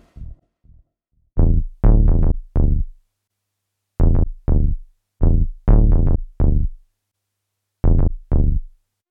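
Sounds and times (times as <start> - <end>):
deep house bassline: 1.4 - 3.0, 4.0 - 6.8, 7.8 - 8.7.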